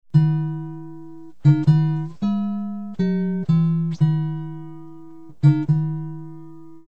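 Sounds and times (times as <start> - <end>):
guitar: 0.0 - 6.9.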